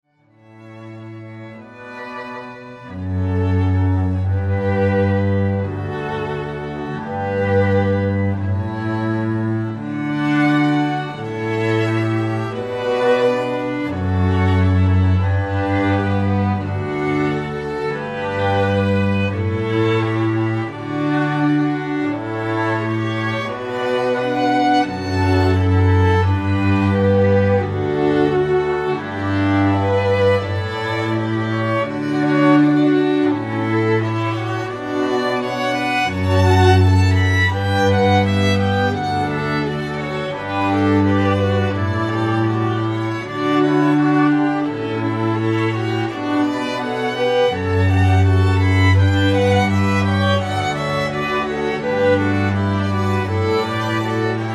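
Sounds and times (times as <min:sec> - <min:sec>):
classical music: 0:00.0 - 0:54.5.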